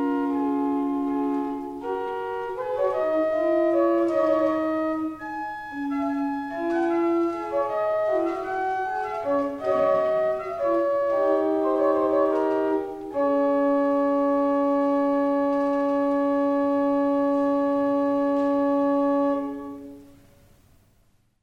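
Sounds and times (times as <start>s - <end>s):
organ music: 0.0s - 20.2s.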